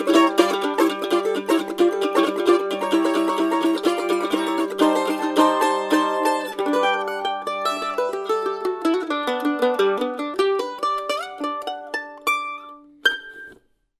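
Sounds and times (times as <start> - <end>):
A-style mandolin: 0.0 - 13.8.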